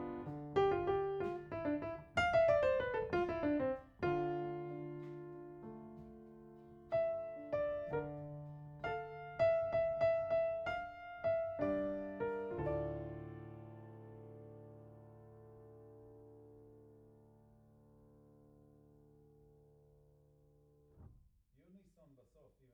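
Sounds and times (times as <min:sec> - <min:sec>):
piano note A: 0:00.0 - 0:16.9.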